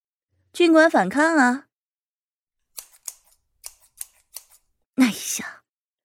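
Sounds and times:
speech: 0:00.6 - 0:01.7, 0:05.2 - 0:05.6
scissors snipping hair: 0:02.6 - 0:04.8.

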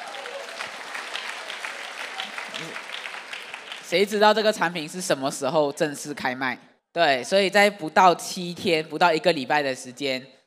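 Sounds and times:
audience clapping: 0:00.0 - 0:04.5
speech: 0:03.9 - 0:10.4.

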